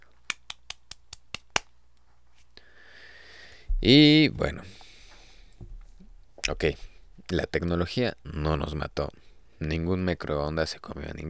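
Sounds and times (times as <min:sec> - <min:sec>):
small soft hand clapping: 0:00.1 - 0:01.8
speech: 0:03.8 - 0:04.8, 0:06.5 - 0:11.2.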